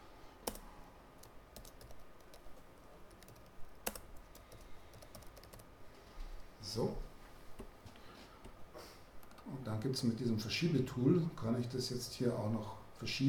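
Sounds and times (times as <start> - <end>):
typing a copyright notice on a computer keyboard: 0.4 - 5.7
speech: 6.7 - 7.1, 9.7 - 13.2.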